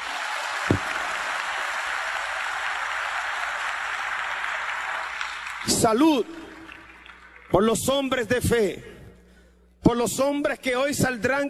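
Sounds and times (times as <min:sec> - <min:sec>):
audience applause: 0:00.0 - 0:07.6
speech: 0:05.8 - 0:06.4, 0:07.5 - 0:08.9, 0:09.9 - 0:11.4.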